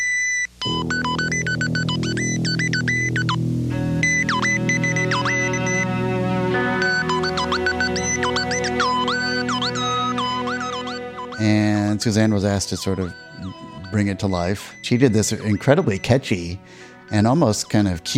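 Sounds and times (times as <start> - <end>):
electronic beeps from dishwasher commercial: 0.0 - 3.4, 4.0 - 6.0, 6.8 - 18.1
warbling synth tones: 6.9 - 16.6
speech: 12.0 - 18.1.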